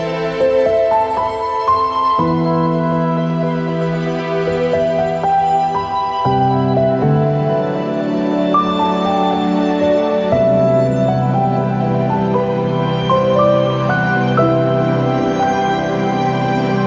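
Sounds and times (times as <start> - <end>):
sweet piano: 0.0 - 16.8.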